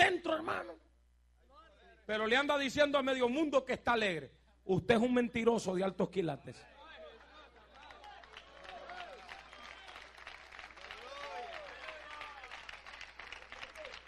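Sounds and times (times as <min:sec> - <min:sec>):
speech: 0:02.1 - 0:06.7
cheering voices and shouts: 0:06.8 - 0:10.1, 0:10.8 - 0:12.6
crowd applause: 0:07.0 - 0:14.0.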